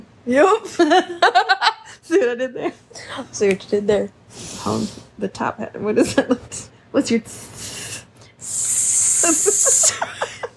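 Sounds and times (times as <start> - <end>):
speech: 0.2 - 7.7
voice hissing imitating bacon sizzling: 7.6 - 9.9.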